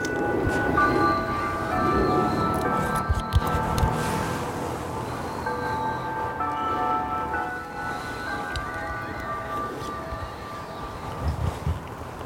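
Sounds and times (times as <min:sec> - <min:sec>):
bells ringing: 0:00.0 - 0:12.2.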